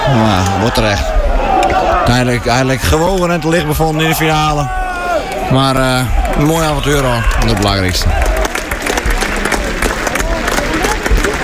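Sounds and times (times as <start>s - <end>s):
speech: 0.1s - 1.1s, 2.1s - 4.8s, 5.5s - 8.4s
supporters applauding in football stadium: 2.9s - 11.4s.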